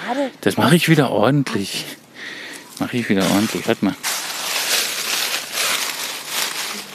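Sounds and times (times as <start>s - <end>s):
speech: 0.1s - 4.1s
dry leaves rustling and crackling: 2.6s - 6.9s.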